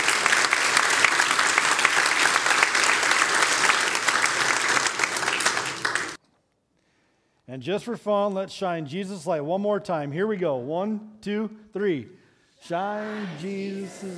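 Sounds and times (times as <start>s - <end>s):
audience applause: 0.0s - 6.2s
speech: 7.6s - 14.1s.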